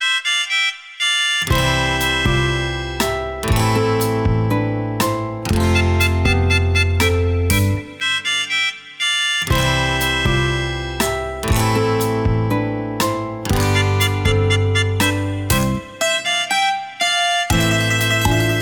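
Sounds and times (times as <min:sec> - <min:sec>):
playful music: 0:00.0 - 0:18.6.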